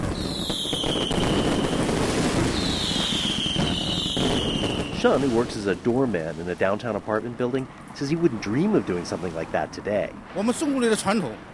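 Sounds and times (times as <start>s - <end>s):
rocket whistles: 0.0s - 5.3s
New Year's fireworks exploding on street: 0.0s - 11.5s
speech: 5.0s - 11.5s.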